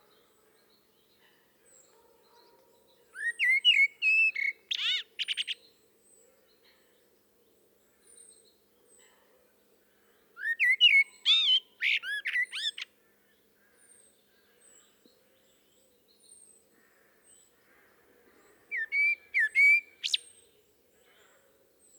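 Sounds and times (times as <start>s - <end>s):
common blackbird singing fluted whistles: 3.2s - 5.4s, 10.4s - 12.8s, 18.7s - 20.3s.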